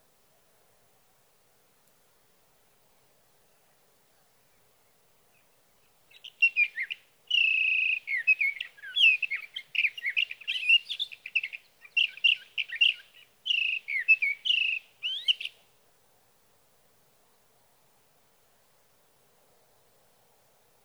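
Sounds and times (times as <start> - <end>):
sage thrasher warbling song: 6.1 - 15.6.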